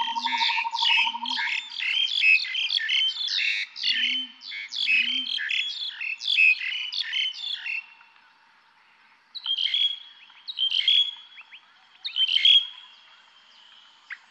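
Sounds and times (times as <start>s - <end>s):
bird chirps in a forest: 0.0s - 8.1s, 9.4s - 14.2s
calm forest ambience: 0.0s - 14.2s.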